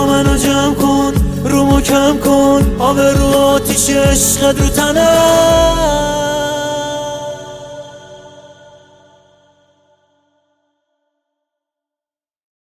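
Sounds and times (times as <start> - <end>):
guitar: 0.0 - 9.2.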